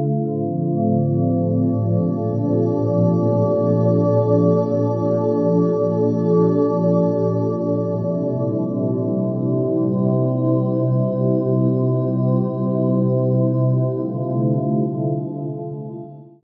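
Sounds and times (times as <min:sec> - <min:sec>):
432Hz deep sleep music: 0:00.2 - 0:16.0.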